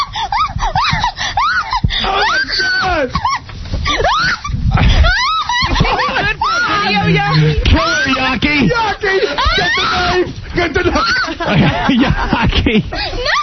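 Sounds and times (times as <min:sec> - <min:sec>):
laughter: 0:00.0 - 0:13.4
woman screaming: 0:00.3 - 0:03.1, 0:03.9 - 0:08.1.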